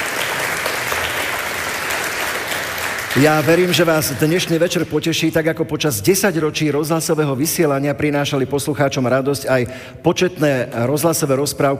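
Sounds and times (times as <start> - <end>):
applause: 0.0 - 4.6
speech: 3.2 - 11.7.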